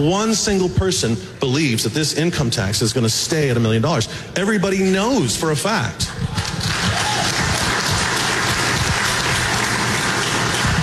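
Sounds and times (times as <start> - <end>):
speech: 0.0 - 6.5
audience clapping: 6.0 - 10.8.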